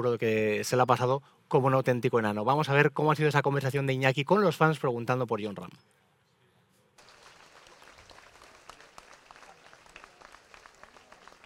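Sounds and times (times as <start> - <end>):
speech: 0.0 - 6.0
fans applauding: 7.0 - 11.4.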